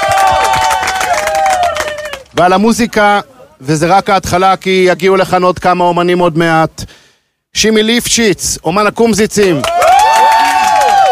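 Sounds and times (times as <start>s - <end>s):
audience applause at a yeshiva event: 0.0s - 2.5s, 9.6s - 11.1s
speech: 2.4s - 9.8s.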